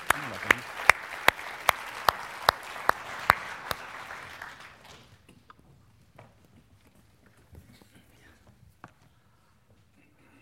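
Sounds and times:
audience applause welcoming a guitar player: 0.0s - 5.2s.

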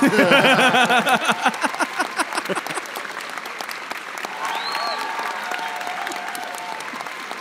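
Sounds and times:
laughter: 0.0s - 3.2s
played applause and cheer sound effect: 0.0s - 7.3s
voices whooping: 4.4s - 7.2s.

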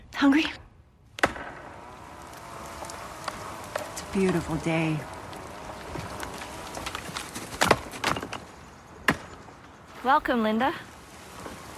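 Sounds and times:
speech: 0.2s - 0.6s, 4.1s - 5.1s, 10.0s - 10.9s
wood chopping: 1.2s - 1.8s, 2.4s - 9.5s.

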